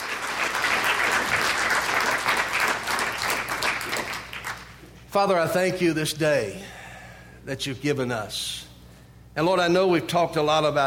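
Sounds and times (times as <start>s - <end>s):
audience applause and hand clapping: 0.0s - 4.8s
speech: 5.2s - 6.8s, 7.4s - 8.6s, 9.4s - 10.8s.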